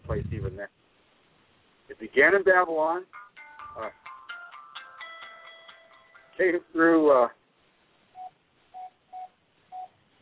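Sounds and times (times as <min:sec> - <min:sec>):
speech: 0:00.1 - 0:00.8, 0:01.9 - 0:03.2, 0:03.8 - 0:04.0, 0:06.4 - 0:07.4
telephone electronic beeps: 0:08.2 - 0:10.0.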